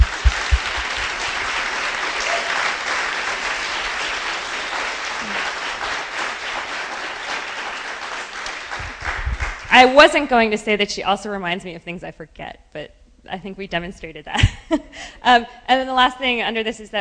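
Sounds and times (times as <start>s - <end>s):
round of applause: 0.0s - 9.8s
speech: 9.8s - 16.9s.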